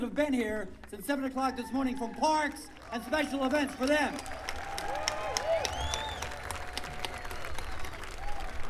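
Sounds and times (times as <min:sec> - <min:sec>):
speech: 0:00.1 - 0:04.5
crowd applause: 0:02.0 - 0:08.6.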